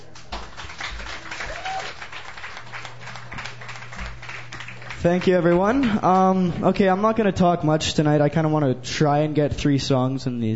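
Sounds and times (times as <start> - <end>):
audience applause welcoming a performer onto a songwriter's stage show: 0.0 - 6.5
speech: 5.0 - 10.5.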